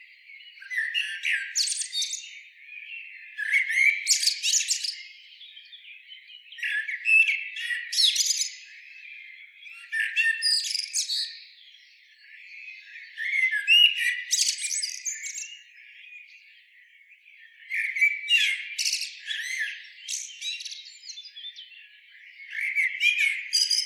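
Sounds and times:
Common blackbird singing: 0.0 - 23.8.

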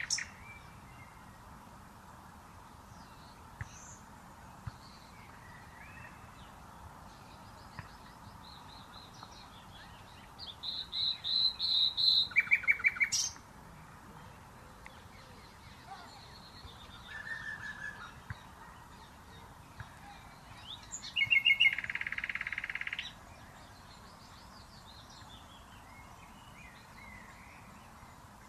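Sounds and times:
common nightingale singing: 0.0 - 1.3, 4.6 - 13.4, 14.2 - 28.4.

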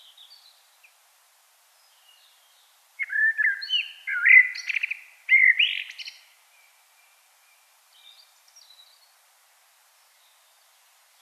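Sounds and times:
common blackbird song: 0.0 - 1.0, 1.7 - 9.2, 10.0 - 11.1.

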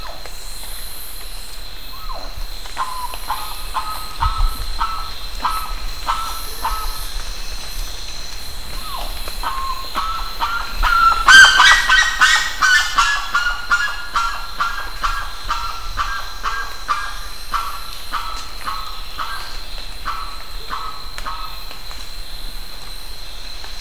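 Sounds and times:
bird harsh repeated calls: 2.8 - 7.2, 8.8 - 21.6.

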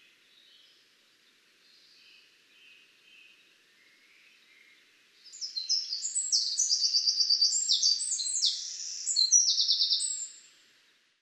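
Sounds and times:
Eurasian wren singing: 5.3 - 10.3.

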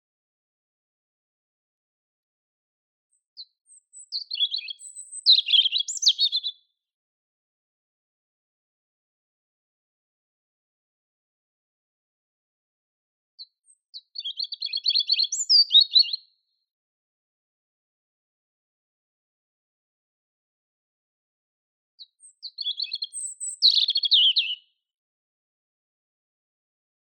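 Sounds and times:
European robin singing: 3.3 - 6.6, 13.4 - 16.3, 22.0 - 24.7.

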